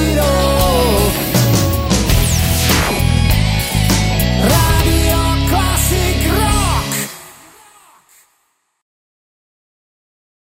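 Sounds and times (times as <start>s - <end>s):
classic rock music: 0.0s - 7.4s.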